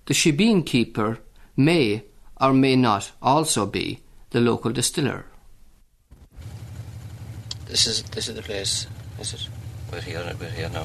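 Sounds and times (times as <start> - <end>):
speech: 0.1 - 5.3, 7.7 - 10.8
car engine idling: 6.1 - 10.8.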